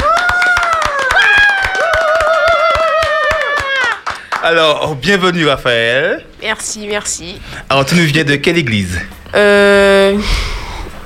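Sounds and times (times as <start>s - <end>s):
audience clapping in rhythm: 0.0s - 5.0s
speech: 4.4s - 10.6s.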